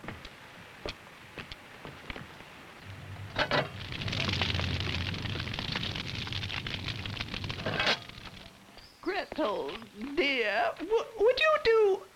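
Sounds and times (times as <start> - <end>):
fire of added sticks crackling in a heated bread oven: 0.0 - 10.9
low rumble of fire in a bread oven: 2.8 - 8.7
speech: 9.4 - 12.0.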